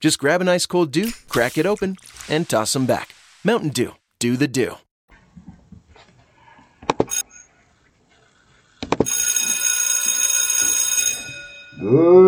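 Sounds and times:
speech: 0:00.0 - 0:04.8, 0:11.8 - 0:12.2
school bell ringing: 0:09.1 - 0:12.0.

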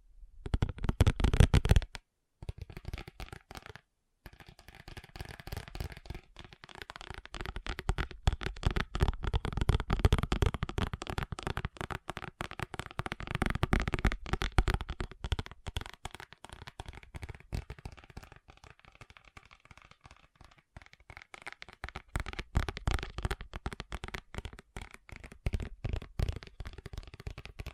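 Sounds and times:
fast tapping: 0:00.5 - 0:27.7.

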